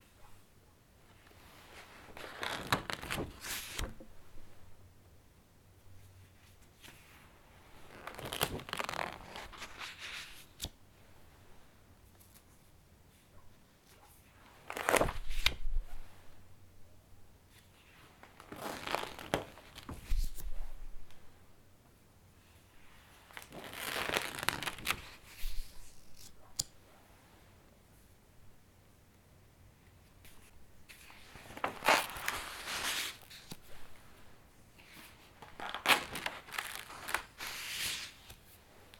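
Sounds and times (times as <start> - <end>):
paging through a book: 1.2 - 4.2, 6.3 - 10.8, 13.8 - 16.4, 17.5 - 21.1, 23.0 - 26.7, 30.2 - 38.9.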